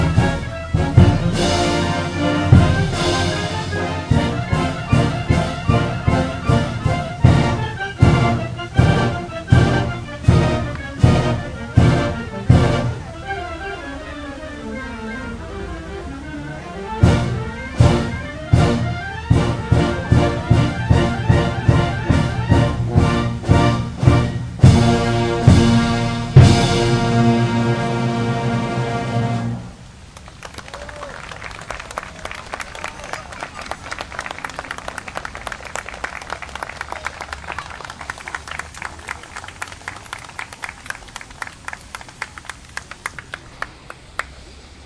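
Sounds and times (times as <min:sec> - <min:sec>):
band concert in the park: 0:00.0 - 0:13.3, 0:17.0 - 0:29.7.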